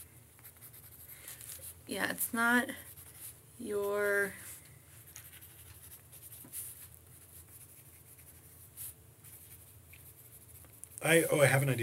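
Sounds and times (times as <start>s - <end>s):
handwriting scratching: 0.4s - 1.8s, 5.0s - 11.0s
speech: 1.9s - 2.9s, 3.6s - 4.5s, 11.0s - 11.8s.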